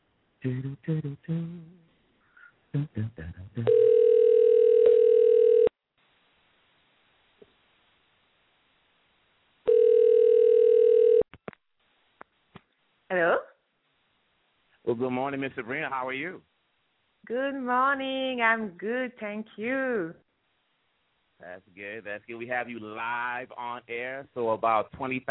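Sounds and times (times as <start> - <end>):
speech: 0.4 - 1.8, 2.7 - 4.1, 15.0 - 16.5, 17.2 - 20.2, 21.4 - 25.2
telephone tones while a call is placed: 3.6 - 5.7, 9.7 - 11.3.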